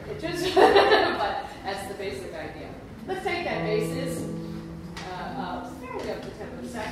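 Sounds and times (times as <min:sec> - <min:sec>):
laughter: 0:00.3 - 0:01.6
Christmas jazz music: 0:03.5 - 0:06.8.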